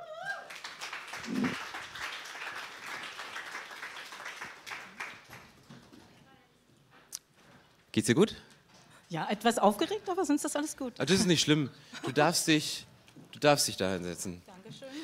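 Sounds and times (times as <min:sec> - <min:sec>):
person whooping: 0:00.0 - 0:00.6, 0:01.2 - 0:01.6
crowd applause: 0:00.0 - 0:05.7
speech: 0:01.2 - 0:01.7, 0:08.0 - 0:08.5, 0:09.1 - 0:14.9.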